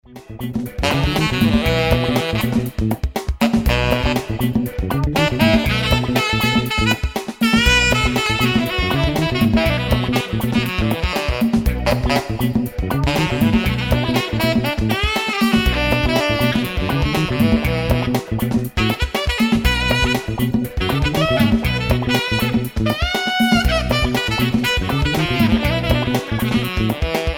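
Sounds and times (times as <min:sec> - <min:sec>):
funk music: 0:00.0 - 0:27.3.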